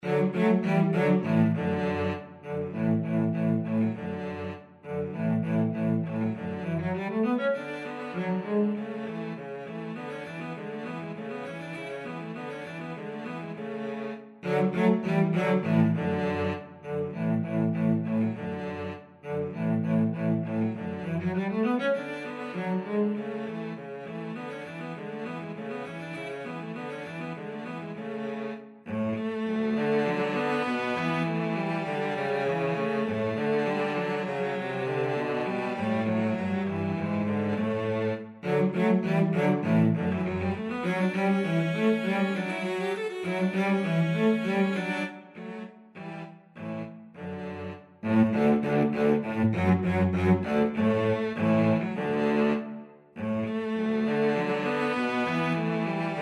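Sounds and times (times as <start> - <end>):
cello duet: 0.0 - 56.2.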